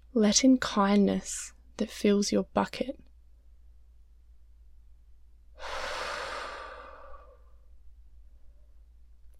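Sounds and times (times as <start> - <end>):
speech: 0.2 - 3.1
slow airy breath during a guided meditation: 5.6 - 7.7.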